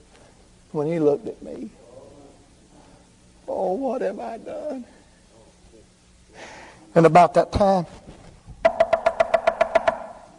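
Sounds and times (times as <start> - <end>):
speech: 0.7 - 1.8, 3.5 - 5.0, 6.9 - 8.0
knocking on a door: 8.6 - 10.2.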